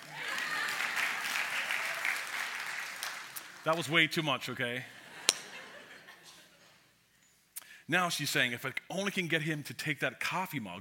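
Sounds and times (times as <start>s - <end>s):
laughter: 0.0s - 1.7s, 4.8s - 6.8s
audience applause: 0.0s - 4.0s
speech: 3.6s - 5.0s, 7.9s - 10.7s.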